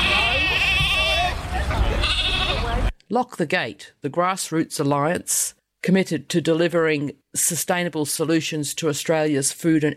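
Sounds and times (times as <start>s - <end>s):
lambs bleating at a farmers' rally outside the Korean embassy in Canberra: 0.0s - 1.3s, 2.0s - 2.7s
murmur of voices: 0.0s - 2.9s
speech: 3.1s - 9.9s.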